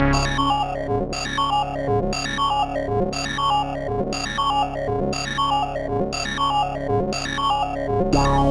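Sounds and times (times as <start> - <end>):
synth: 0.1 - 8.4.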